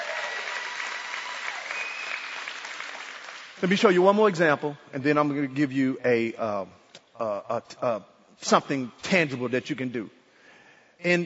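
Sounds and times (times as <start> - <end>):
audience clapping: 0.0 - 4.0
speech: 3.6 - 10.2, 11.0 - 11.2.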